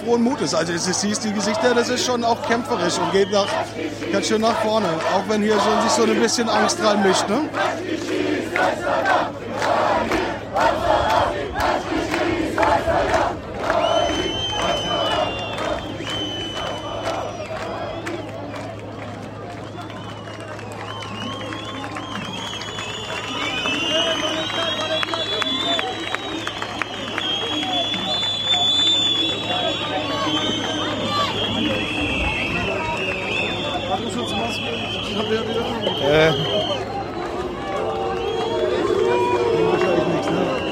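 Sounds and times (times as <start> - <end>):
speech: 0.0 - 9.4
crowd of demonstrators shouting: 0.0 - 40.7
sharp whistles: 13.8 - 18.3, 19.6 - 37.4, 38.0 - 39.0, 39.8 - 40.7.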